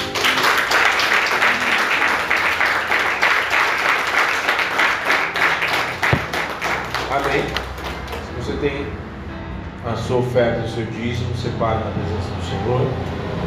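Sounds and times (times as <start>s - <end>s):
audience applauding: 0.0s - 8.3s
speech: 9.9s - 13.2s.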